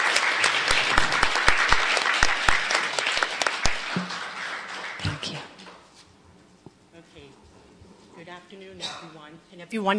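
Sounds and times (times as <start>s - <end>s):
audience applause welcoming a speaker: 0.0s - 5.4s
speech: 9.7s - 9.9s.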